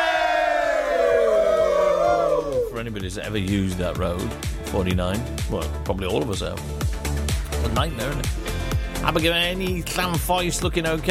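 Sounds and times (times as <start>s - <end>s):
crowd cheering hurrah: 0.0s - 2.9s
speech: 2.8s - 7.0s, 7.6s - 11.0s.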